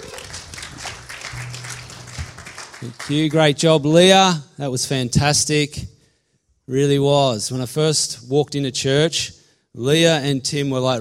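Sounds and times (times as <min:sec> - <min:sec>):
audience clapping for the band: 0:00.0 - 0:03.5
speech: 0:02.8 - 0:05.9, 0:06.7 - 0:10.9.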